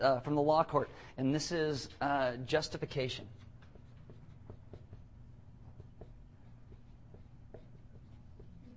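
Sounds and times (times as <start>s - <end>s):
speech: 0.0s - 3.4s
handwriting with a pen on paper: 3.6s - 5.1s, 5.7s - 8.7s.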